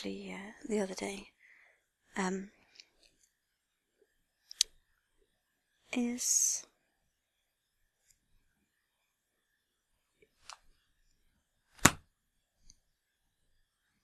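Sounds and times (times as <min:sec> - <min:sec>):
speech: 0:00.0 - 0:01.4, 0:02.1 - 0:02.6, 0:05.9 - 0:06.7
flexible riding crop with wooden handle and leather tip hitting a bed: 0:11.8 - 0:12.0.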